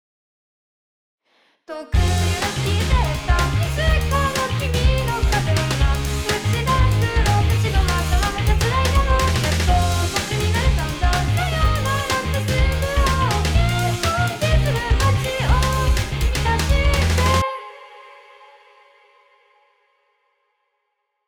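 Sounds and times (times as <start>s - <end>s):
noise: 2.0s - 18.0s.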